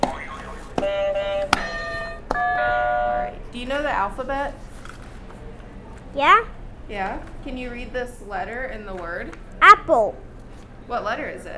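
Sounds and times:
game buzzers struck, sustained electronic tone: 0:00.8 - 0:03.3
speech: 0:03.7 - 0:04.7, 0:06.1 - 0:10.3, 0:10.9 - 0:11.5.

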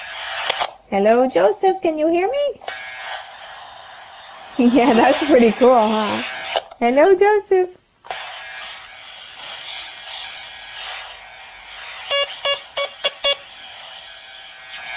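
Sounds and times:
speech: 0:00.9 - 0:02.7, 0:04.6 - 0:07.8
Morse code beeps from a walkie-talkie: 0:12.1 - 0:13.4.

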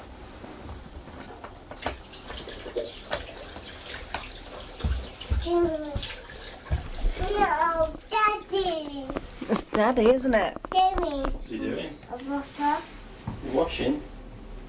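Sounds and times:
water running into a bath: 0:01.6 - 0:09.1
child talking: 0:05.4 - 0:06.1, 0:07.1 - 0:09.2, 0:10.6 - 0:11.4, 0:12.1 - 0:13.0
speech: 0:05.5 - 0:06.1, 0:09.8 - 0:12.8, 0:13.5 - 0:14.1.

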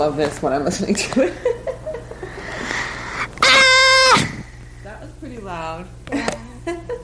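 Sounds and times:
speech: 0:00.0 - 0:01.7
person screaming into a device: 0:03.4 - 0:04.4.

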